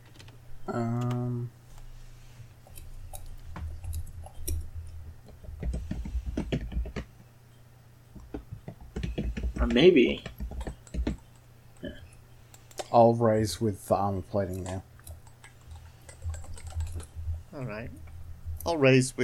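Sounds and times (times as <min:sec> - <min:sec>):
speech: 0:00.7 - 0:01.6, 0:09.7 - 0:10.3, 0:12.9 - 0:14.9, 0:18.8 - 0:19.2
computer keyboard typing: 0:02.6 - 0:07.1, 0:08.2 - 0:11.9, 0:12.5 - 0:13.0, 0:14.4 - 0:17.4.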